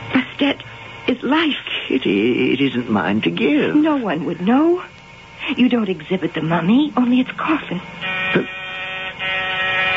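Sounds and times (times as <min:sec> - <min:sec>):
speech: 0:00.4 - 0:08.6
electric door buzzer: 0:08.0 - 0:09.9.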